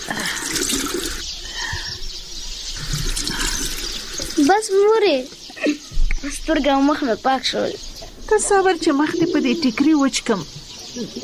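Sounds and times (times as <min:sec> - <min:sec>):
water splashing while washing a child's face: 0:00.0 - 0:01.2, 0:02.8 - 0:04.8
speech: 0:04.5 - 0:11.2.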